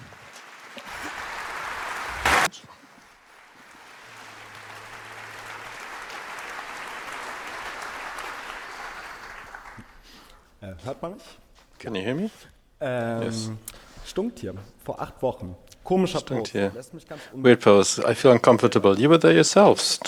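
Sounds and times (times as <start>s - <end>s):
applause from a large crowd: 0.0s - 10.4s
speech: 10.6s - 20.0s.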